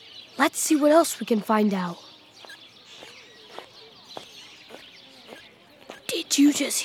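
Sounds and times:
faint chirpy background: 0.0s - 6.8s
speech: 0.4s - 2.1s, 6.4s - 6.8s
squeaky shoes squeaking with each footstep: 2.4s - 6.2s.

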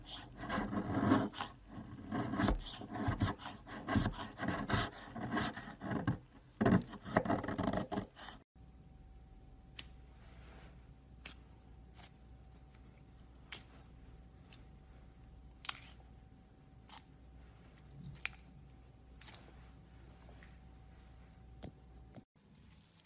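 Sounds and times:
soap carving scraping strokes: 0.0s - 8.5s
faint steady hum: 8.6s - 22.3s.

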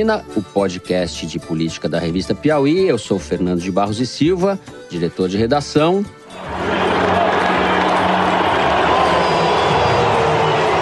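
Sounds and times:
speech: 0.0s - 6.7s
large crowd booing and applauding: 6.4s - 10.8s.

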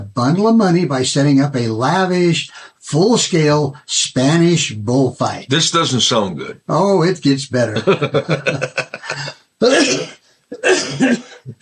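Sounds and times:
speech: 0.2s - 11.6s
laughter: 7.7s - 9.4s
person coughing: 9.0s - 11.6s.

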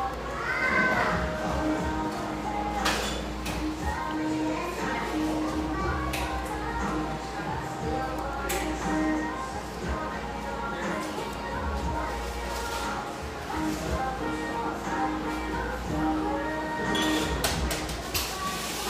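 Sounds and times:
murmur of voices in a cafe: 0.0s - 18.8s
dishes or cups clinking in a cafe: 2.8s - 3.6s.

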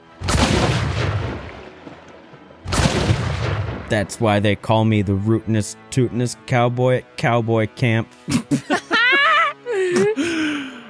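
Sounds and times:
goopy explosion sound effect: 0.2s - 1.6s, 2.7s - 4.1s
speech: 3.9s - 8.8s, 9.9s - 10.3s
laughter: 8.2s - 10.8s.

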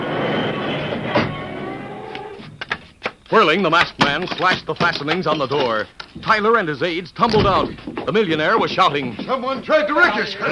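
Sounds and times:
railroad car grinding to a stop: 0.0s - 3.4s
speech: 3.3s - 10.5s.

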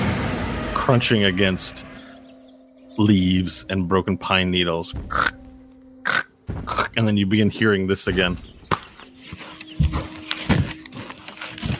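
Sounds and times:
speech: 0.8s - 1.9s, 3.0s - 5.4s, 6.0s - 8.5s
something rubbing on tree bark: 8.8s - 11.7s.

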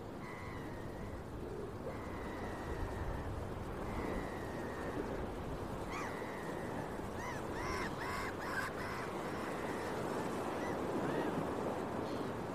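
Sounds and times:
gulls calling: 0.2s - 12.4s.

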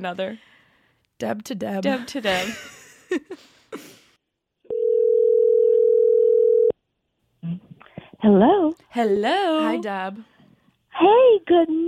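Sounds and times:
speech: 0.0s - 0.5s, 1.2s - 3.8s, 8.2s - 10.3s, 11.0s - 11.8s
phone ringback tone on an outgoing call: 4.7s - 6.7s.

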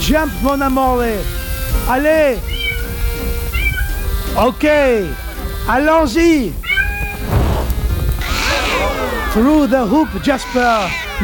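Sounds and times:
rumbling noise: 0.0s - 11.2s
speech: 0.1s - 2.5s, 4.4s - 6.6s, 9.3s - 11.2s
cat yowling after burning its fur: 2.4s - 4.2s, 5.0s - 5.5s, 6.6s - 7.3s, 8.2s - 11.2s.

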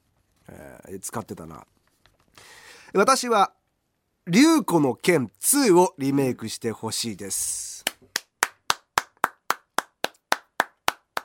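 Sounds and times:
speech: 0.5s - 1.8s, 2.9s - 3.6s, 4.2s - 7.8s
applause: 7.8s - 11.2s.

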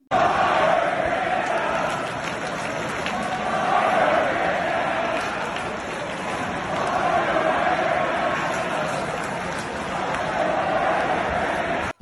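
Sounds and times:
hockey arena crowd chanting: 0.0s - 12.0s.

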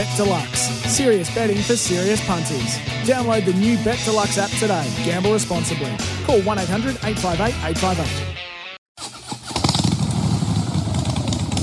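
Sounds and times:
speech: 0.0s - 8.4s
Harley-Davidson Pan America motorcycle engine starting and revving: 9.0s - 11.6s.

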